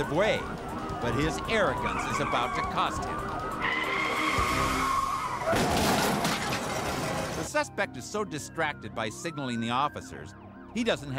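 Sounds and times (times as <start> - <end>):
speech: 0.0 - 3.4, 5.5 - 5.9, 7.5 - 11.1
car skidding on a blown tire: 1.1 - 7.4.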